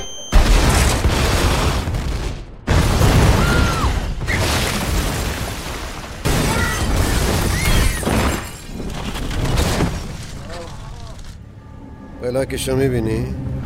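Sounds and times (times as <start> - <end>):
explosions: 0.3 - 10.2
speech: 12.3 - 13.5.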